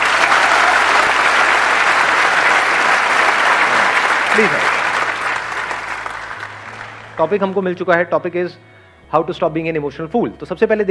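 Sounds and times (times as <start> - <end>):
audience applause: 0.0 - 7.7
speech: 4.4 - 4.6, 7.2 - 10.9.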